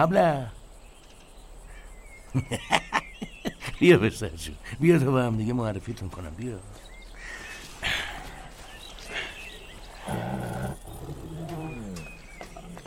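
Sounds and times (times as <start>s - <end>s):
speech: 0.0s - 0.6s, 2.3s - 2.9s, 3.7s - 6.9s
laughter: 2.3s - 4.0s
tiger growling and roaring: 9.9s - 12.8s.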